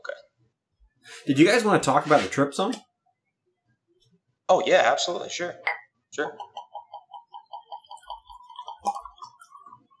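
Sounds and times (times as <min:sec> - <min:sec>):
speech: 0:01.2 - 0:02.9, 0:04.5 - 0:06.5
whiskey glugging out of a bottle into a glass: 0:05.7 - 0:09.9.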